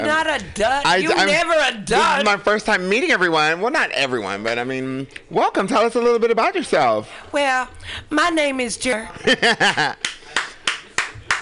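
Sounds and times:
speech: 0:00.0 - 0:10.2
laughter: 0:09.2 - 0:10.1
lone person clapping: 0:10.0 - 0:11.4.

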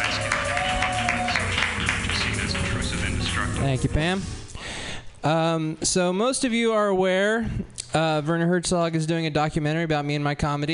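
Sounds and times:
faint cheers: 0:00.0 - 0:02.4
audience clapping for a comedian: 0:00.0 - 0:03.4
speech: 0:03.6 - 0:04.4, 0:05.2 - 0:10.7.

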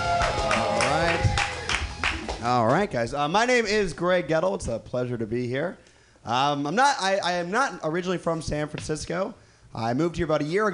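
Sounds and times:
audience applause: 0:00.0 - 0:02.4
speech: 0:02.5 - 0:10.7.

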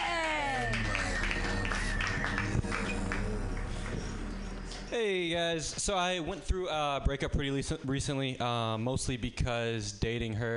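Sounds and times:
scattered whoops and voices: 0:00.0 - 0:03.4
audience clapping: 0:00.0 - 0:04.9
speech: 0:05.0 - 0:10.5.

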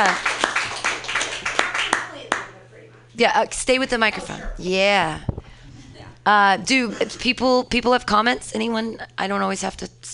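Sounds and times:
speech: 0:00.0 - 0:00.3, 0:03.2 - 0:05.3, 0:06.2 - 0:10.1
audience clapping: 0:00.0 - 0:02.6.

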